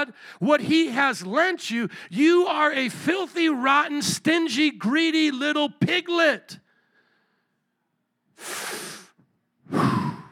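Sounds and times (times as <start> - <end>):
speech: 0.0 - 6.6
preacher breathing in air: 6.7 - 7.6, 8.4 - 10.2.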